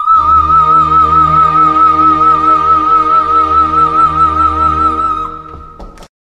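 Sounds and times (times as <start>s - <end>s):
musical solo: 0.1s - 6.0s.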